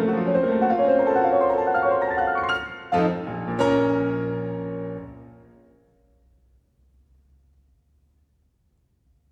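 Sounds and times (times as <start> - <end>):
piano prelude in B-flat minor: 0.0 - 5.8.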